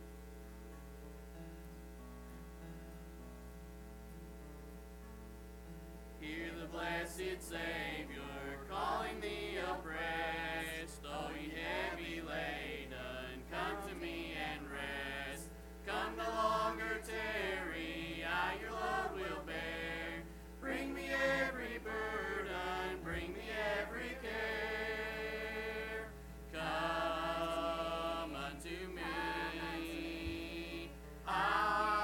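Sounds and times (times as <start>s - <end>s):
family singing: 6.2s - 32.0s.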